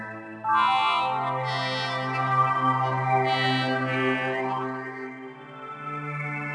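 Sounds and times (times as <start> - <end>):
Vegas ambience loop: 0.5 - 4.9.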